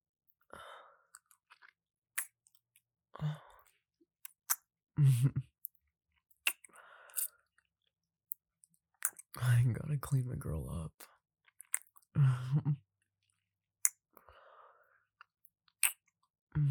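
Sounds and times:
person chewing and crunching while tasting food: 0:01.1 - 0:02.6, 0:06.4 - 0:08.4, 0:09.0 - 0:09.4, 0:15.2 - 0:16.1
speech: 0:03.2 - 0:03.4, 0:05.0 - 0:05.5, 0:09.4 - 0:11.1, 0:12.2 - 0:12.9.

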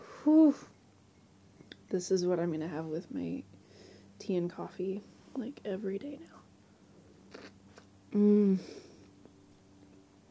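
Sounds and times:
speech: 0:00.2 - 0:00.8, 0:01.9 - 0:03.6, 0:04.2 - 0:06.4, 0:08.1 - 0:08.8
biting and chewing a milk-chocolate-covered snack with orange jelly: 0:07.3 - 0:07.9
person humming in enjoyment: 0:08.1 - 0:08.9.

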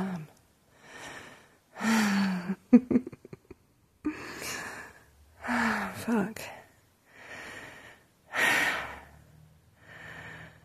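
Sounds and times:
heavy breathing of someone catching their breath: 0:00.7 - 0:02.6, 0:04.1 - 0:10.6.

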